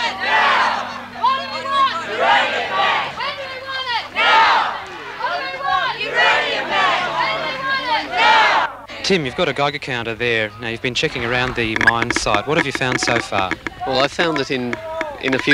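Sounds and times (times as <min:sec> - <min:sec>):
protest crowd chanting: 0:00.0 - 0:09.6
speech: 0:09.1 - 0:15.5.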